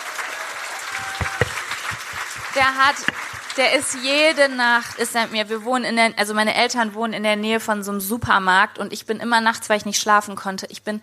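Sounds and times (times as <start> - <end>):
audience applause: 0.0 - 5.5
speech: 2.6 - 11.0.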